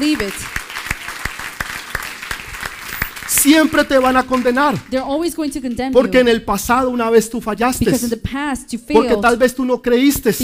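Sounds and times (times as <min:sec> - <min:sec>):
speech: 0:00.0 - 0:00.6, 0:03.4 - 0:10.4
loud audience applause: 0:00.0 - 0:05.0.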